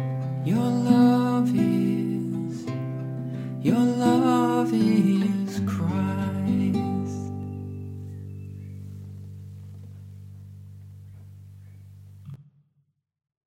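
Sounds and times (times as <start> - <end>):
lullaby: 0.2 - 9.0.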